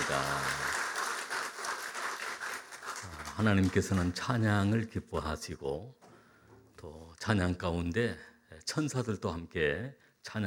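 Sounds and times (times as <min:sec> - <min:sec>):
audience clapping: 0:00.0 - 0:04.3
speech: 0:03.4 - 0:06.0, 0:06.8 - 0:10.4.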